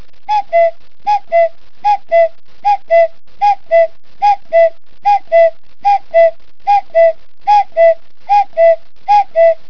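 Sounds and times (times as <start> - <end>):
common cuckoo calling: 0.3 - 9.6.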